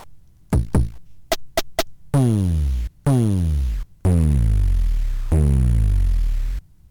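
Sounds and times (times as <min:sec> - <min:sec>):
Bleep Drum electronic drum machine playing: 0:00.5 - 0:01.0, 0:02.1 - 0:06.6.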